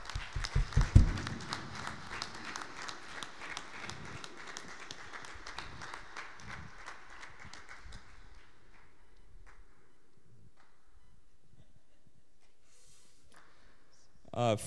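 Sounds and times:
audience applause for guests: 0.0 - 9.6.

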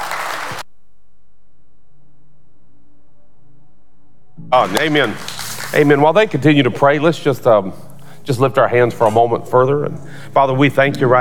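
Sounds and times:
audience hand clapping: 0.0 - 0.6, 4.6 - 6.5
speech: 4.5 - 11.1.

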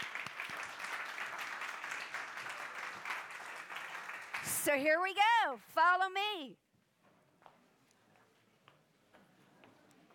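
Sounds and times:
audience applause: 0.0 - 4.7
speech: 4.6 - 6.6.

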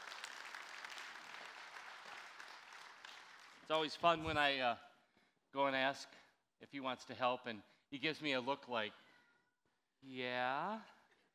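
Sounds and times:
audience round of applause: 0.0 - 3.7
speech: 3.7 - 4.9, 5.5 - 9.0, 10.0 - 11.0.

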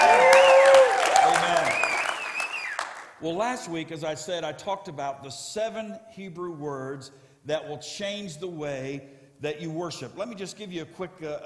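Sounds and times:
church congregation clapping to welcome online viewers: 0.0 - 3.2
speech: 3.2 - 11.4.

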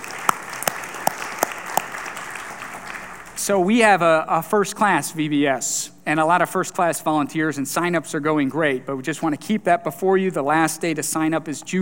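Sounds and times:
audience applause: 0.0 - 3.4
speech: 3.4 - 11.7.

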